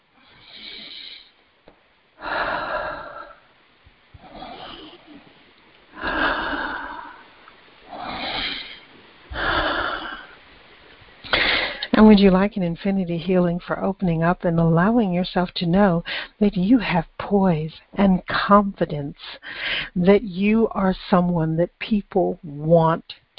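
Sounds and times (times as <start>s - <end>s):
deep breaths during a guided healing session: 0.2s - 1.4s, 2.2s - 3.6s, 4.2s - 12.0s, 16.0s - 16.4s, 19.3s - 20.0s
speech: 12.1s - 23.3s.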